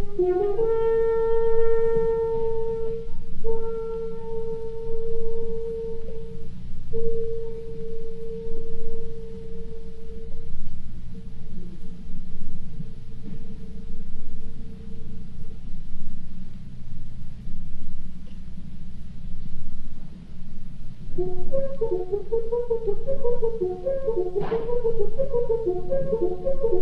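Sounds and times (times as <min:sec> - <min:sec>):
horn call played live: 0:00.0 - 0:10.3, 0:21.2 - 0:26.8.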